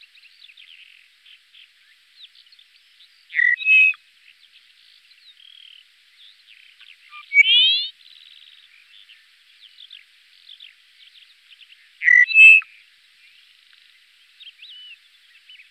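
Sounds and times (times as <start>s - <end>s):
Dupont's lark calling with nasal whistled notes: 3.3s - 4.0s, 7.1s - 7.9s, 12.0s - 12.7s.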